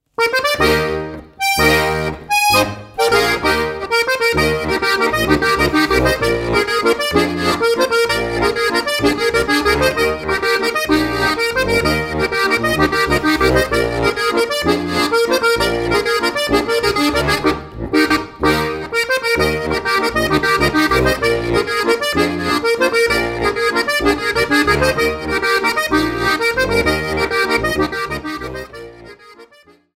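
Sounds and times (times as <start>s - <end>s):
landler dance music: 0.2s - 29.3s.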